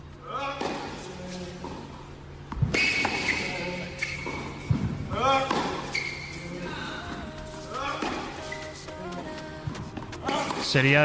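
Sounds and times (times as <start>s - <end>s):
tennis ball strikes during training: 0.6s - 1.8s, 2.5s - 6.4s, 7.7s - 8.5s, 9.6s - 10.7s
high squeaky chirps: 2.7s - 6.6s, 7.8s - 8.8s.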